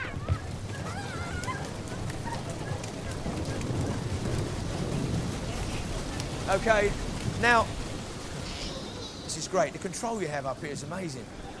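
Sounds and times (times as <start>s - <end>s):
audience clapping imitating violent storm: 0.0s - 7.4s
speech: 6.5s - 7.8s, 9.3s - 11.4s.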